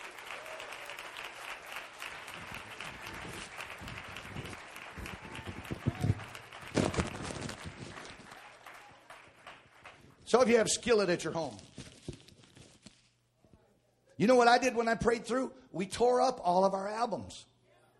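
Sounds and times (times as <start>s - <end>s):
one person clapping: 0.0s - 10.0s
speech: 10.3s - 11.7s, 14.2s - 17.5s.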